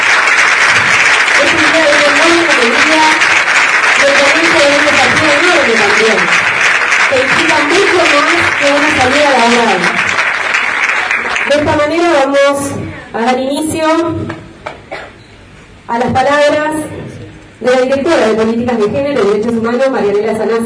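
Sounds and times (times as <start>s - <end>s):
audience applause: 0.0s - 11.9s
speech: 7.1s - 10.0s, 11.5s - 14.4s, 15.9s - 16.9s, 17.6s - 20.6s.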